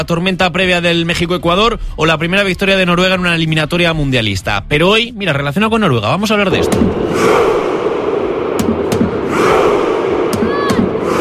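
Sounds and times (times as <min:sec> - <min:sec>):
speech: 0:00.0 - 0:07.5
football fans' war chant: 0:06.6 - 0:11.1.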